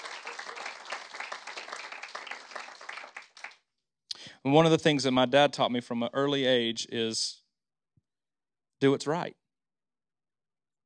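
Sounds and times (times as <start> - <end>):
audience clapping: 0.0 - 3.7
speech: 4.4 - 7.4, 8.8 - 9.4.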